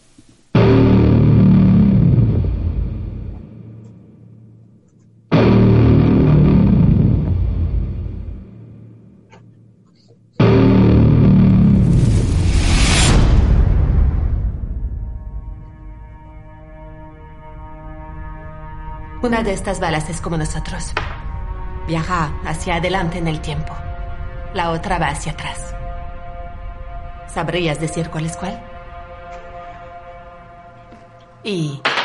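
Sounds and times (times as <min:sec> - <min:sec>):
booming effects: 0:00.6 - 0:04.5, 0:05.3 - 0:09.2, 0:10.4 - 0:15.6
film trailer music: 0:00.6 - 0:31.6
speech: 0:19.3 - 0:21.2, 0:21.9 - 0:23.9, 0:24.5 - 0:25.7, 0:27.4 - 0:28.7, 0:31.4 - 0:31.9.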